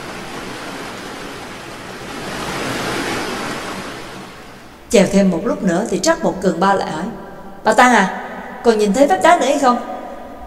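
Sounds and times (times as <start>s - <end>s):
ocean wave crashing: 0.0s - 4.9s
speech: 4.9s - 9.9s.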